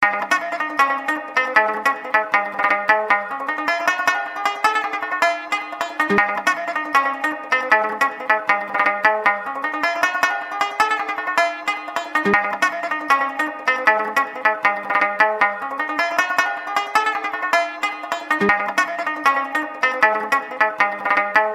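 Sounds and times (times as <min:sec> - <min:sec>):
fast banjo playing: 0:00.0 - 0:21.5.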